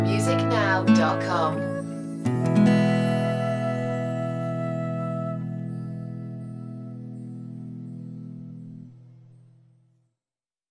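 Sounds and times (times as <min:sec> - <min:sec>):
orchestral flute music: 0:00.0 - 0:07.0.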